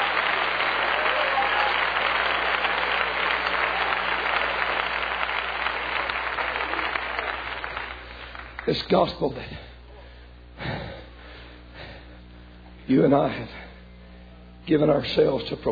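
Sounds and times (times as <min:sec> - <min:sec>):
audience clapping hands: 0:00.0 - 0:09.4
speech: 0:08.7 - 0:09.7, 0:12.9 - 0:13.6, 0:14.7 - 0:15.7.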